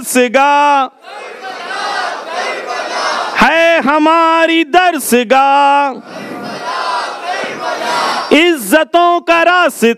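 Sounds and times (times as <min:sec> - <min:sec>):
speech: 0:00.0 - 0:01.4, 0:03.4 - 0:06.3, 0:08.3 - 0:09.9
crowd chanting a religious slogan: 0:01.0 - 0:03.5, 0:06.0 - 0:08.3.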